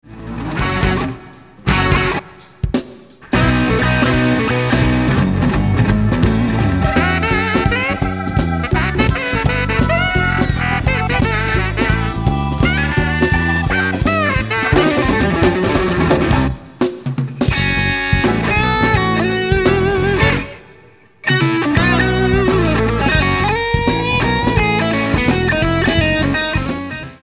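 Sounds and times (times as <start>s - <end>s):
funk music: 0.0s - 27.2s.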